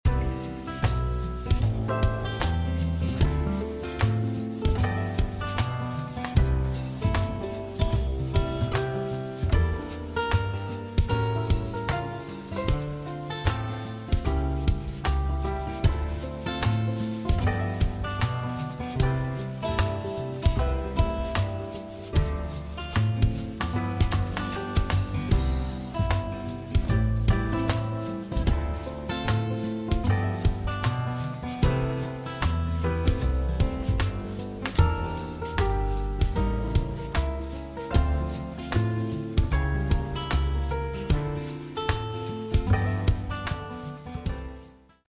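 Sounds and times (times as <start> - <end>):
jazz party music mix: 0.0 - 45.0.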